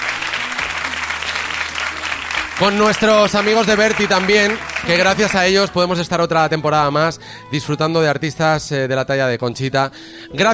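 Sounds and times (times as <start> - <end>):
audience applause: 0.0 - 5.7
speech: 2.6 - 10.5.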